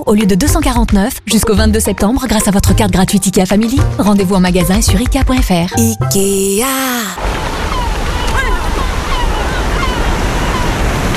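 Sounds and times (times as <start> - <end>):
speech: 0.0 - 7.8
sea waves roaring at the seaside: 7.0 - 11.1.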